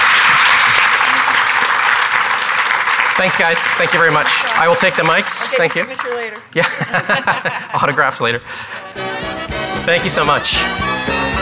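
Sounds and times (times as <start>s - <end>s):
audience round of applause: 0.0s - 7.1s
laughter: 0.2s - 1.7s, 6.5s - 8.4s
speech: 3.2s - 9.2s, 9.8s - 11.4s.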